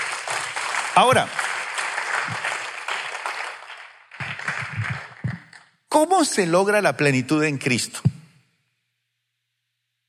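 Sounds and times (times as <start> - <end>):
audience applauding: 0.0 - 5.6
speech: 1.0 - 1.4, 6.0 - 8.1.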